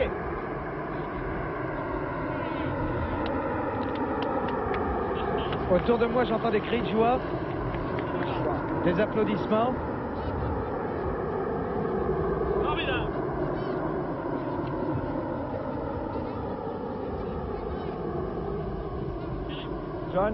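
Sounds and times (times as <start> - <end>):
Concorde jet airliner taking off and climbing: 0.0 - 20.3
speech: 5.7 - 7.5, 8.8 - 9.9, 20.2 - 20.3.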